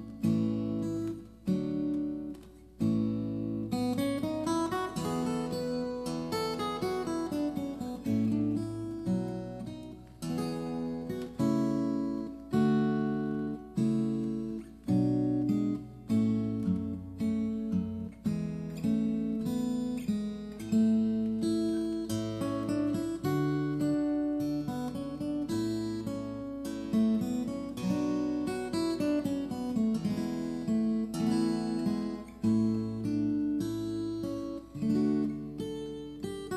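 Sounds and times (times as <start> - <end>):
ricercar on steel string guitar: 0.0 - 36.5.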